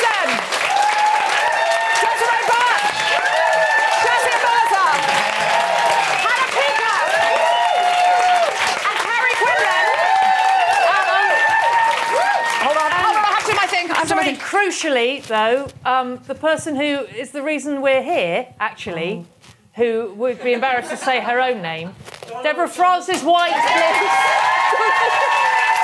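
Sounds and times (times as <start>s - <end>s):
audience applause: 0.0s - 14.4s, 23.5s - 25.8s
speech: 14.8s - 25.3s.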